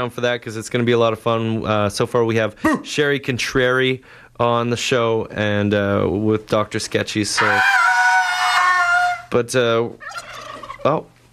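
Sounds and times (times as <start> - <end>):
speech: 0.0 - 7.9, 9.3 - 11.1
turkeys gobbling coming into a building: 7.3 - 9.3, 10.0 - 11.0.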